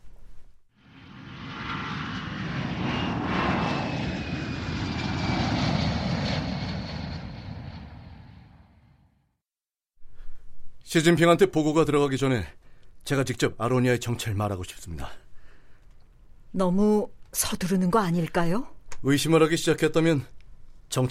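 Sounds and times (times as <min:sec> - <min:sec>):
airplane flying past: 0:00.8 - 0:09.2
speech: 0:10.9 - 0:15.2, 0:16.5 - 0:21.0.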